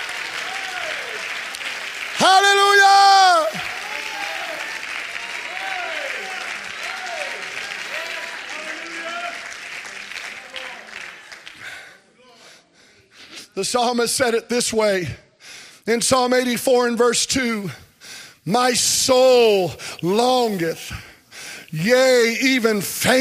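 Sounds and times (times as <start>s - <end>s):
audience clapping hands: 0.0s - 12.0s
person shouting: 2.2s - 4.5s
speech: 13.6s - 15.2s, 15.9s - 17.8s, 18.4s - 21.0s, 21.7s - 23.1s.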